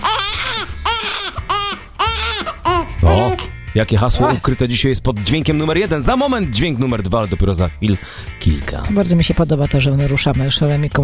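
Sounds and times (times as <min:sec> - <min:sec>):
baby crying in high-pitched wails: 0:00.0 - 0:03.6
speech: 0:03.0 - 0:11.0.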